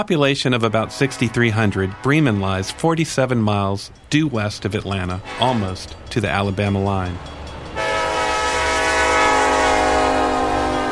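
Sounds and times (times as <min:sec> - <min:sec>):
speech: 0:00.0 - 0:07.4
train whistle blowing: 0:00.6 - 0:03.0, 0:07.8 - 0:10.9.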